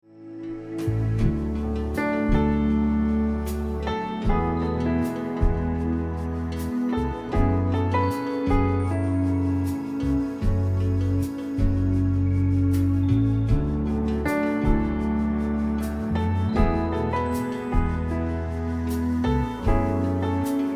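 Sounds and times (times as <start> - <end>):
instrumental music: 0.0 - 20.7.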